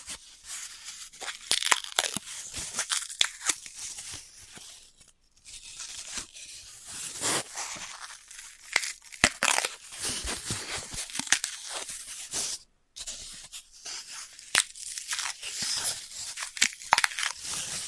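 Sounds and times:
floral foam crushing: 1.2 - 3.6, 7.0 - 11.9, 14.4 - 17.8.

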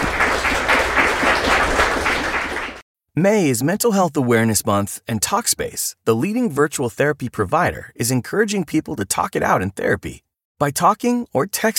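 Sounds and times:
audience applause: 0.0 - 2.8
speech: 3.2 - 11.7.

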